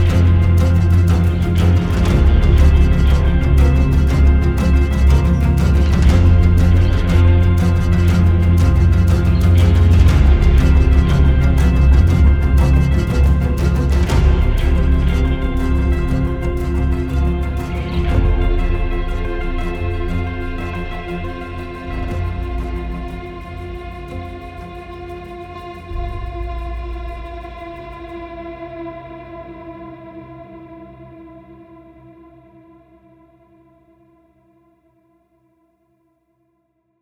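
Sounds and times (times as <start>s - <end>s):
acoustic music: 0.0s - 27.2s.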